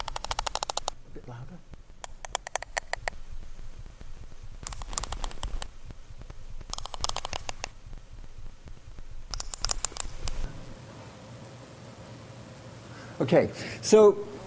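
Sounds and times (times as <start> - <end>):
sperm whale coda clicks: 0.0 - 10.8
speech: 1.2 - 1.8, 13.2 - 14.3.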